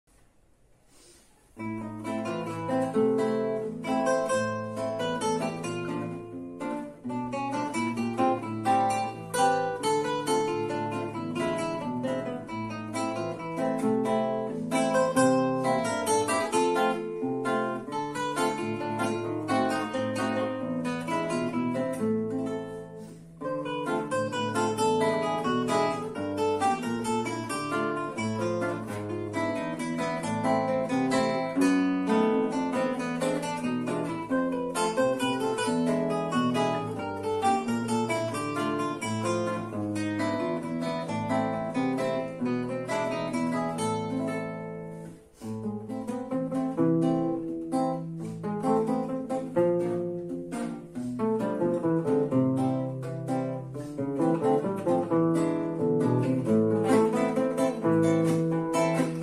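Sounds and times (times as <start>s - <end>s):
bossa valse on guitar: 0.9s - 59.2s.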